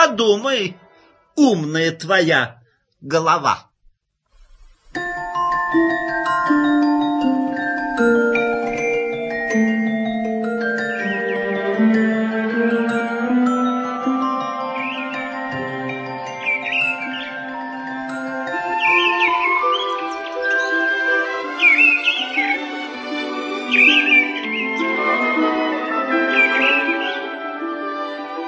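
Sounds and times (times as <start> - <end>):
speech: 0.1 - 0.8, 1.4 - 3.7, 5.7 - 5.9
birds singing in spring forest: 6.2 - 27.6.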